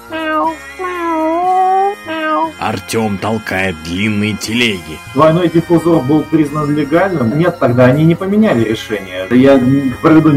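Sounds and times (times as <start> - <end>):
person imitating a cat meowing: 0.0 - 2.6
speech: 2.6 - 10.3.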